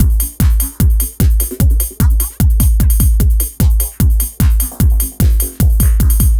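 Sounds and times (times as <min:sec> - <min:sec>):
dance drum loop: 0:00.0 - 0:06.3.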